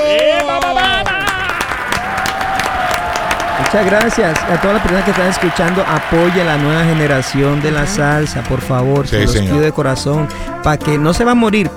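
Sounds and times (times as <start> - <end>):
applause from three people: 0.0 - 11.0
laughter: 0.0 - 11.7
speech: 3.7 - 11.7.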